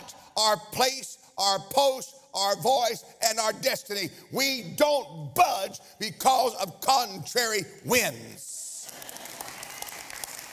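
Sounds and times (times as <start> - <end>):
speech: 0.4 - 8.5
audience clapping: 8.4 - 10.5.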